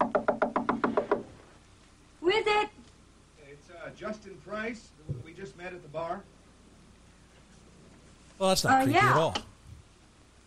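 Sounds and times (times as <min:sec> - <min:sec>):
persistent knocking on a door: 0:00.0 - 0:01.2
speech: 0:03.9 - 0:06.4, 0:08.4 - 0:09.5.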